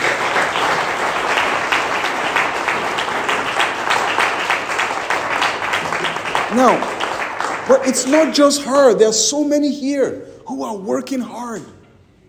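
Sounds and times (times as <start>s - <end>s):
audience applause: 0.0s - 8.6s
speech: 6.6s - 7.0s, 7.7s - 11.8s.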